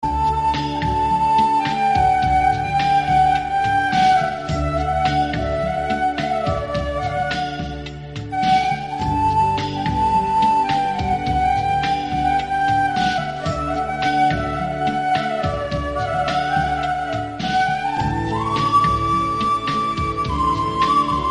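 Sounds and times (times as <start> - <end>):
instrumental music: 0.0 - 21.3.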